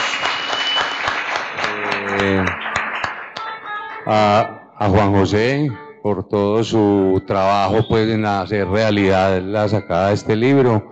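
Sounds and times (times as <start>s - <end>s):
audience applause: 0.0s - 3.7s
speech: 4.1s - 10.9s.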